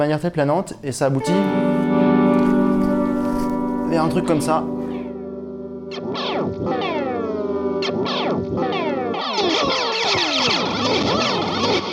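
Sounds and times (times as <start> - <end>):
speech: 0.0 - 2.0, 3.9 - 4.8, 5.9 - 6.9, 7.8 - 11.9
delay pedal driven into feedback: 1.2 - 11.9.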